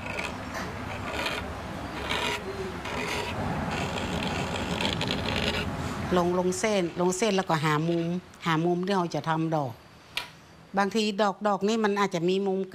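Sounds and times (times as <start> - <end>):
pointed iron tool scraping metal: 0.0 - 5.8
speech: 6.1 - 9.8, 10.8 - 12.7.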